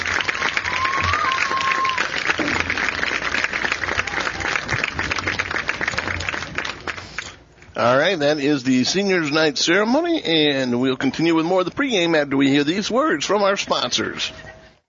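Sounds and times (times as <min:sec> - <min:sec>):
audience applause: 0:00.0 - 0:07.3
speech: 0:07.8 - 0:14.4.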